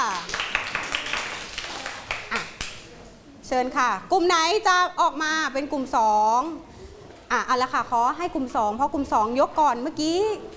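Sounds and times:
students clapping for classmates: 0.0s - 2.9s
speech: 3.5s - 6.7s, 7.3s - 10.5s.

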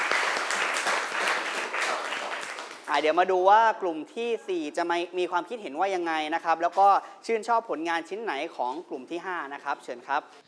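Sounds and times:
crowd applauding: 0.0s - 2.9s
speech: 2.9s - 10.4s.

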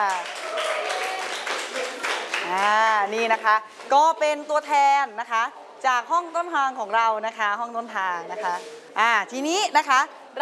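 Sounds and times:
group applauding: 0.0s - 3.0s
speech: 2.5s - 10.4s.

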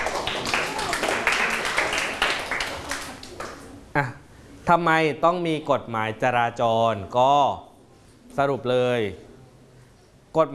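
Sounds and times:
classroom students clapping for a classmate: 0.0s - 3.7s
speech: 4.0s - 7.7s, 8.3s - 9.3s, 10.3s - 10.5s.

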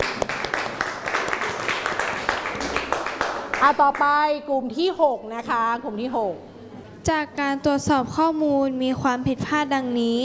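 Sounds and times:
classroom applause for classmates: 0.0s - 3.8s
speech: 3.6s - 6.5s, 7.1s - 10.2s.

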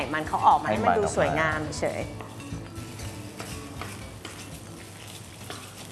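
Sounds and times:
speech: 0.1s - 2.4s
curry paste stir-fried in oil sizzling: 2.2s - 5.9s
scraping stirs: 2.2s - 5.9s.

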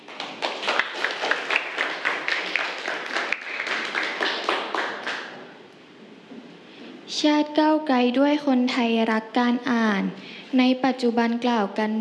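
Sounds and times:
crowd clapping: 0.0s - 5.6s
speech: 7.2s - 11.9s.

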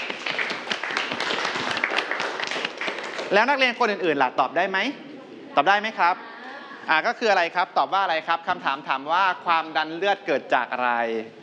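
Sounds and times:
students clapping for a classmate: 0.0s - 3.6s
speech: 3.3s - 5.0s, 5.6s - 6.3s, 6.9s - 11.4s.

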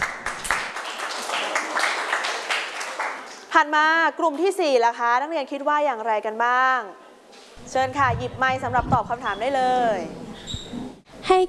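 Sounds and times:
classroom children applauding: 0.0s - 3.4s
speech: 3.6s - 7.0s, 7.6s - 10.2s, 11.3s - 11.4s.

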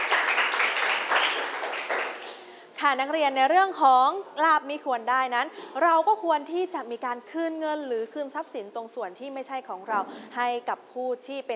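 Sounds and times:
classmates clapping during a Thai classroom lesson: 0.0s - 2.5s
speech: 2.8s - 11.5s.

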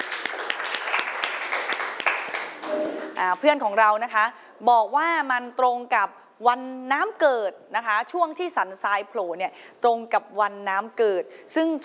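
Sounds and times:
audience applause: 0.0s - 3.2s
speech: 3.2s - 11.8s.

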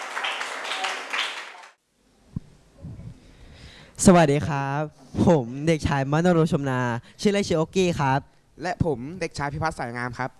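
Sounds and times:
group clapping to welcome classmates: 0.0s - 1.8s
speech: 4.0s - 10.3s.

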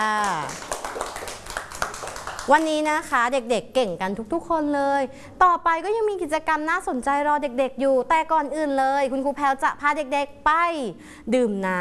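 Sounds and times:
children clapping for a classmate's drawing: 0.2s - 2.8s
speech: 2.5s - 11.8s.

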